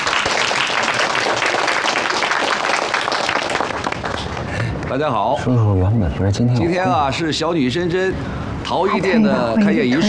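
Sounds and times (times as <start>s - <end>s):
crowd applause: 0.0s - 4.7s
speech: 4.9s - 10.0s.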